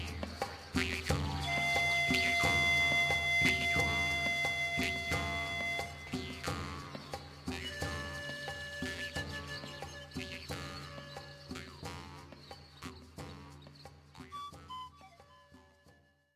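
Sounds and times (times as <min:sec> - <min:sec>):
shamanic drum music for a celebration: 0:00.0 - 0:16.0.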